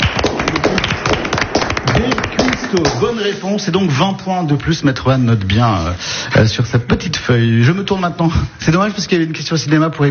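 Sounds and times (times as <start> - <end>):
studio audience applause on a French television quiz show: 0.0 - 3.9
speech: 2.7 - 10.0.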